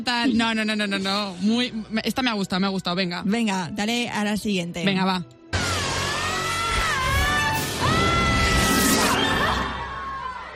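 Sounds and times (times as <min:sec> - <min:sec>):
speech: 0:00.0 - 0:05.4
screaming in a film excerpt: 0:05.6 - 0:10.5.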